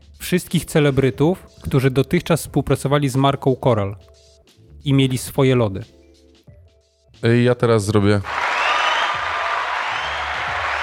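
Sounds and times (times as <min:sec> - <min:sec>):
speech: 0:00.3 - 0:04.2, 0:04.8 - 0:06.0, 0:07.2 - 0:08.4
person clapping hands: 0:08.3 - 0:10.8.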